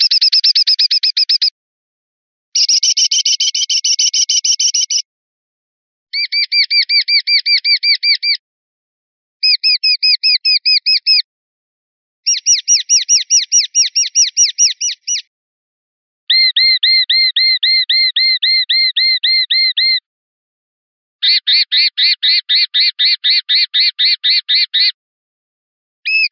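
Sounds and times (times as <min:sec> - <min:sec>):
sparrowhawk calls: 0:00.0 - 0:01.5, 0:02.6 - 0:05.0, 0:06.2 - 0:08.4, 0:09.4 - 0:11.2, 0:12.3 - 0:15.3, 0:16.3 - 0:20.0, 0:21.2 - 0:25.0, 0:26.1 - 0:26.2.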